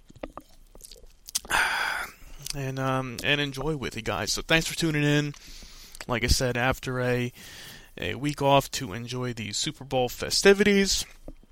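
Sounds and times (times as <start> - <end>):
person sipping a drink: 0.1 - 2.6
mouth clicks: 0.1 - 3.3
speech: 2.5 - 11.2.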